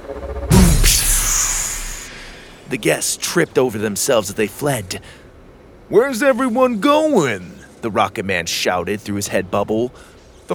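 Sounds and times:
heavy thump: 0.5 - 2.5
glass shattering: 0.6 - 2.4
speech: 2.7 - 5.2, 5.9 - 10.5.

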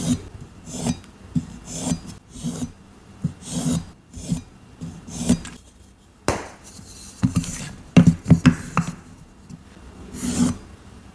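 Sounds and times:
plain gym chalk being shaved and cut: 0.0 - 8.1, 10.1 - 10.6.

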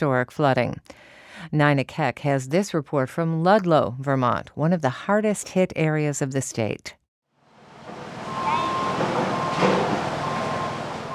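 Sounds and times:
speech: 0.0 - 7.0
dump trucks and heavy equipment bulldozing: 7.6 - 11.1
high electronic beep of dump trucks and heavy equipment: 8.3 - 11.1.

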